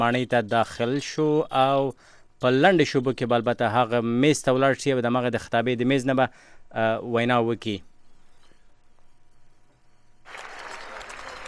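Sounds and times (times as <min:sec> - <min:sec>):
speech: 0:00.0 - 0:07.9
applause as President Trump enters the chamber: 0:10.2 - 0:11.4.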